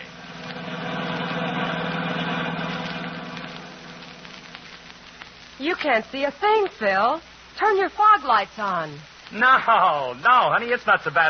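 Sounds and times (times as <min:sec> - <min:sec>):
car driving through the San Bernardino Valley in California: 0:00.0 - 0:04.9
speech: 0:05.6 - 0:11.2.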